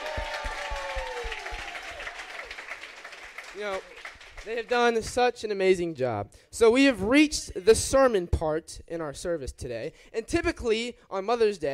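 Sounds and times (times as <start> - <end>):
audience applause: 0.0 - 5.0
speech: 3.6 - 11.7.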